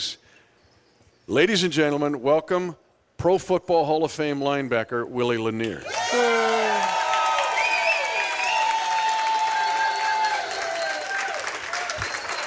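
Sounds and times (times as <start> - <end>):
speech: 1.3 - 6.6
crowd clapping and cheering in a standing ovation for a Hall of Fame linebacker: 5.8 - 12.4.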